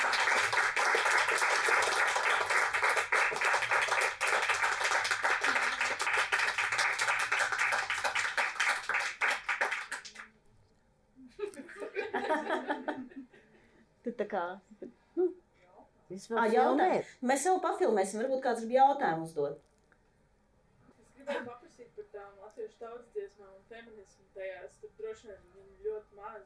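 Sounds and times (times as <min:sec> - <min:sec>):
audience applause: 0:00.0 - 0:10.3
laughter: 0:11.2 - 0:13.7
speech: 0:14.2 - 0:15.3, 0:16.2 - 0:19.7, 0:23.5 - 0:25.8.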